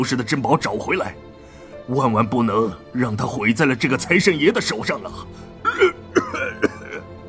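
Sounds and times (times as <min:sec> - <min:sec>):
speech: 0:00.0 - 0:01.3, 0:01.9 - 0:06.0
old man coughing: 0:05.6 - 0:07.1.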